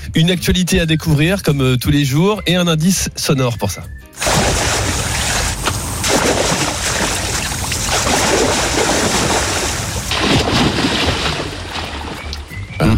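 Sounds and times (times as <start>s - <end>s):
speech: 0.1s - 4.7s
sea waves at a bathing spot: 4.2s - 12.8s.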